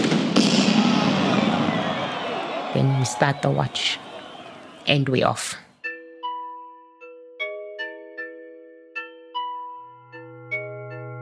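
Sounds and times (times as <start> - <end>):
starting cannon firing at race start: 0.0 - 2.4
speech: 2.8 - 4.1, 4.8 - 5.6.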